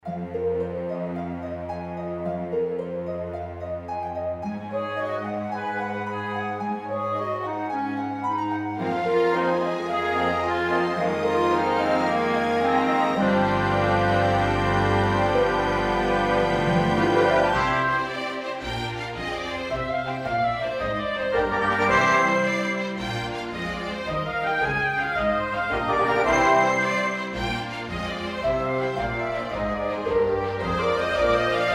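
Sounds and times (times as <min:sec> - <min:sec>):
jig music: 0:00.3 - 0:31.7.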